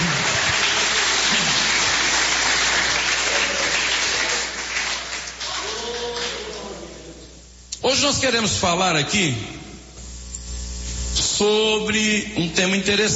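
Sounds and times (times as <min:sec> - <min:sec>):
audience clapping: 0:00.0 - 0:07.0
speech: 0:08.0 - 0:09.6, 0:11.4 - 0:13.1.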